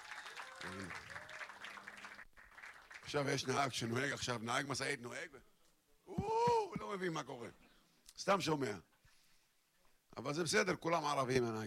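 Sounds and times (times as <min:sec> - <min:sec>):
applause: 0:00.0 - 0:04.2
speech: 0:00.6 - 0:01.2, 0:03.1 - 0:05.5, 0:06.8 - 0:08.9, 0:10.1 - 0:11.6.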